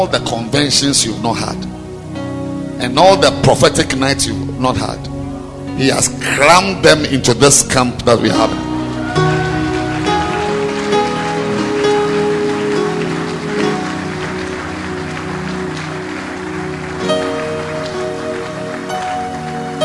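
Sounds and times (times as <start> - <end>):
speech: 0.0 - 1.8, 2.8 - 5.1, 5.8 - 8.7
audience clapping: 8.4 - 19.8.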